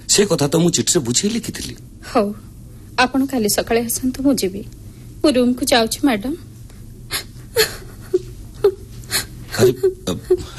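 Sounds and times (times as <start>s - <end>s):
speech: 0.1s - 6.5s, 9.6s - 10.5s
person sobbing and whimpering in a dramatic scene: 7.1s - 10.5s.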